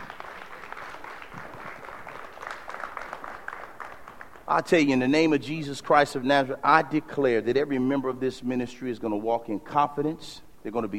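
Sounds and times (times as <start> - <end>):
audience clapping hands: 0.0 - 4.7
speech: 4.5 - 10.9.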